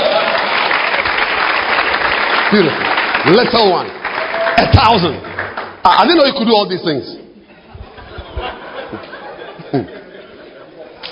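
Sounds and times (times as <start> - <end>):
applause: 0.0 - 6.4
speech: 2.5 - 4.0, 4.6 - 7.2, 9.7 - 10.0
laughter: 7.4 - 11.0.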